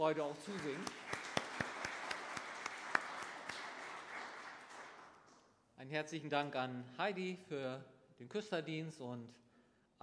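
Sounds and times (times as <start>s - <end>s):
speech: 0.0s - 1.2s, 5.8s - 9.4s
audience clapping for a singer: 0.0s - 5.5s.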